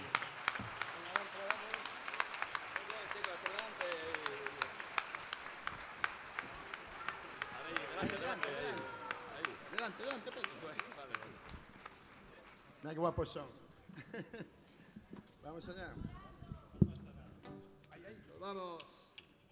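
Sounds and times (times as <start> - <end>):
audience applause: 0.0 - 13.0
laughter: 7.6 - 11.4, 13.8 - 15.0
speech: 9.9 - 10.9, 12.8 - 14.6, 15.5 - 16.2, 18.4 - 19.0.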